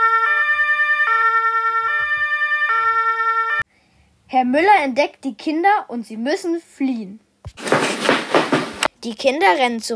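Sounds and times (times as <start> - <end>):
two-tone police siren: 0.0 - 3.6
speech: 4.3 - 7.7, 9.0 - 9.9.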